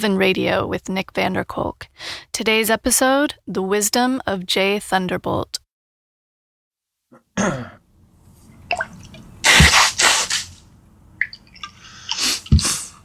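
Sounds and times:
speech: 0:00.0 - 0:05.6, 0:07.1 - 0:07.8
loud explosive sneezes: 0:09.4 - 0:10.6, 0:12.2 - 0:13.0.

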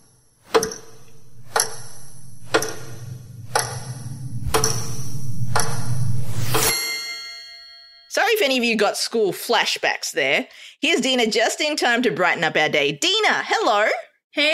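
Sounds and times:
low droning tone with rising sweep: 0:00.0 - 0:06.7
timer clock ticking: 0:00.5 - 0:06.7
speech: 0:08.5 - 0:14.5.

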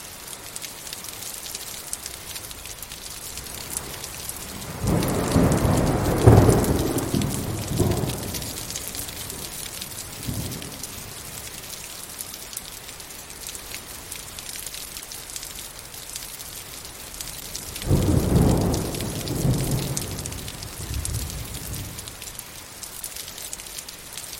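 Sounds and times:
heavy rain: 0:00.0 - 0:24.3
deep rolls of thunder: 0:03.4 - 0:11.3, 0:17.7 - 0:22.2.

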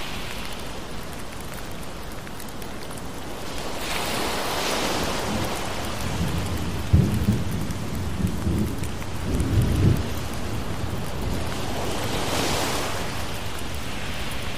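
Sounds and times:
ocean waves washing in: 0:00.0 - 0:14.5
steady rain hiss: 0:00.0 - 0:14.5
low rumbling thunder: 0:05.2 - 0:11.5.

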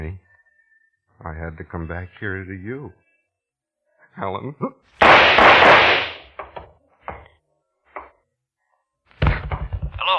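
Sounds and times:
speech: 0:01.2 - 0:03.0, 0:04.2 - 0:06.0
handgun gunshots in a radio drama: 0:05.0 - 0:06.3.

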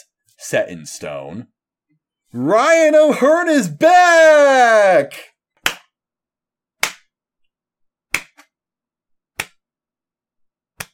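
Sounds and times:
speech: 0:00.0 - 0:01.6, 0:02.3 - 0:05.3
hands clapping: 0:05.6 - 0:05.9, 0:06.8 - 0:07.0.

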